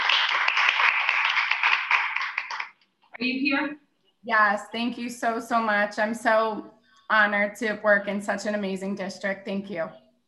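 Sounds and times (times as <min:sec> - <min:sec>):
round of applause for a grade school teacher: 0:00.0 - 0:02.8
speech: 0:03.2 - 0:10.0.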